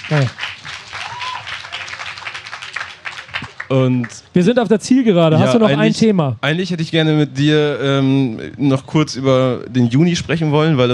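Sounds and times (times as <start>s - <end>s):
audience applause: 0.0s - 4.2s
speech: 0.1s - 0.6s, 3.7s - 10.9s.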